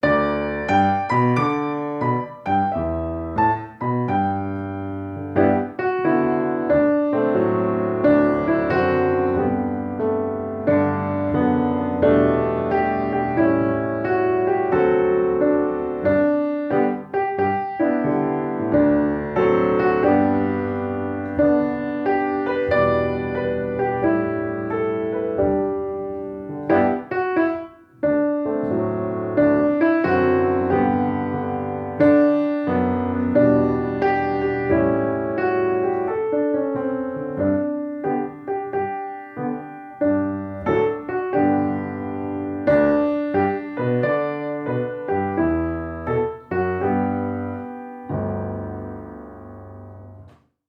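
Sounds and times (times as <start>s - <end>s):
classical music for babies: 0.0s - 50.6s.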